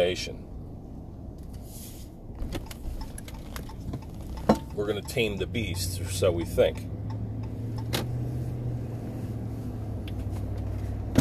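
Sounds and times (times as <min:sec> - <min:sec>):
speech: 0:00.0 - 0:00.5, 0:02.5 - 0:02.8, 0:04.8 - 0:07.0
car driving along a road: 0:00.0 - 0:11.1.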